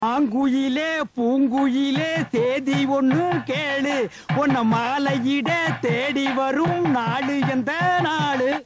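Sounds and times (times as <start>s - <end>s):
person singing: 0.0s - 8.6s.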